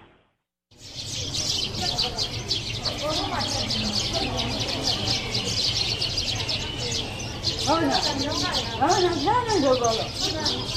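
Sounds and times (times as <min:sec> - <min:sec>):
birds chirping at a large pagoda in Bagan: 0:00.0 - 0:10.7
indistinct murmuring voices: 0:01.1 - 0:10.7.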